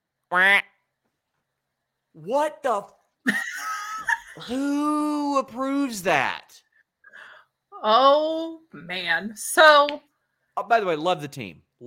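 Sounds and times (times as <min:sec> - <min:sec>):
speech: 0:00.3 - 0:00.7, 0:02.2 - 0:03.5, 0:04.4 - 0:06.6, 0:07.8 - 0:11.8
person quacking like a duck: 0:00.3 - 0:00.8.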